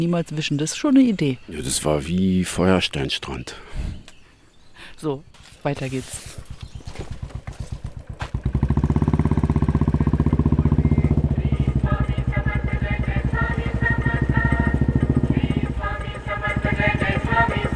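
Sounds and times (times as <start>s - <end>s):
speech: 0.0s - 4.0s, 4.8s - 7.1s
Royal Enfield motorcycle engine thumping during a ride: 6.6s - 17.7s.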